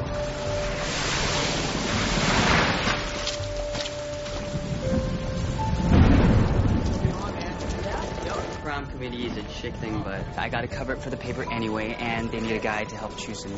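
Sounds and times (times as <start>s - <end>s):
deep rumbling: 0.0s - 13.5s
rain falling: 0.0s - 13.5s
speech: 9.2s - 13.5s.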